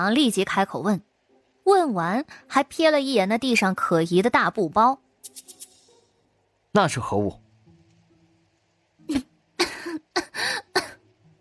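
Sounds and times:
speech: 0.0s - 5.6s, 6.8s - 7.4s, 9.1s - 9.3s
woman lightly coughing and clearing her throat: 9.1s - 11.0s.

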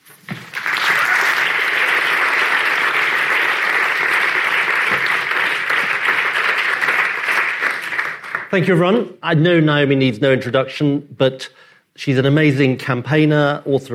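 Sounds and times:
audience applause welcoming two speakers: 0.4s - 8.6s
speech: 8.5s - 13.9s.

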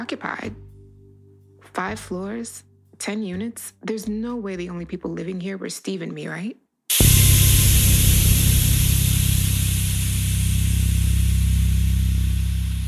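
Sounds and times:
speech: 0.0s - 0.7s, 1.7s - 7.1s
boiler steam hissing in pipes: 6.9s - 12.8s.

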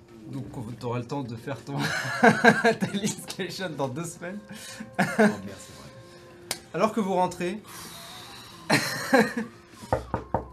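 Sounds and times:
speech: 0.8s - 5.8s, 6.8s - 8.0s, 8.7s - 9.6s
laughter: 1.8s - 3.4s, 4.7s - 5.5s, 8.7s - 9.7s
knocking on a door: 9.9s - 10.5s.

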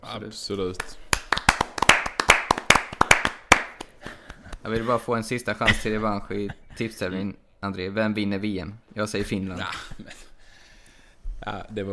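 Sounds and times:
speech: 0.1s - 1.1s, 4.6s - 10.3s, 11.4s - 11.9s
hand clapping: 0.8s - 5.0s.

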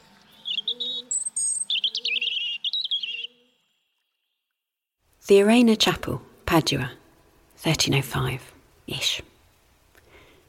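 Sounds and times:
robin singing: 0.2s - 3.9s
speech: 5.3s - 7.0s, 7.6s - 9.3s.

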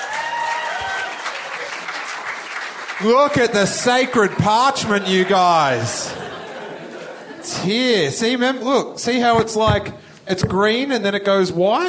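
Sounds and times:
whoops and cheers: 0.0s - 1.8s
crowd applauding: 0.0s - 7.2s
speech: 3.0s - 6.2s, 7.5s - 11.8s
laughter: 4.5s - 8.1s.

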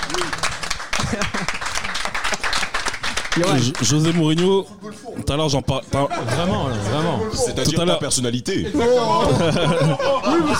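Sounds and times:
applause: 0.0s - 4.5s
laughter: 0.9s - 2.5s, 5.8s - 7.5s, 8.6s - 10.5s
speech: 1.1s - 2.0s, 3.4s - 10.5s.

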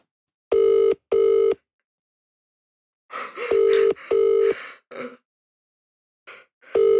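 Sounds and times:
telephone ringing tone after dialing: 0.5s - 1.6s, 3.5s - 4.6s, 6.8s - 6.9s.

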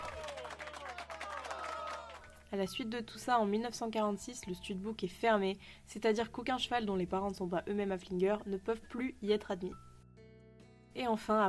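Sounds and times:
applause: 0.0s - 2.6s
speech: 2.5s - 9.9s, 11.0s - 11.4s.

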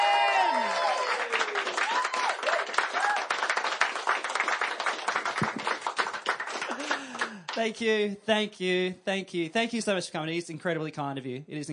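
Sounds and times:
faint whoops and voices: 0.0s - 3.4s
crowd applause: 0.0s - 7.6s
speech: 7.6s - 11.7s.

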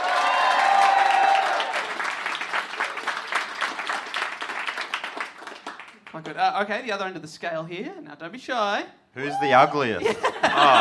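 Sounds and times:
audience round of applause: 0.0s - 6.2s
speech: 6.2s - 10.7s
laughter: 9.8s - 10.7s.

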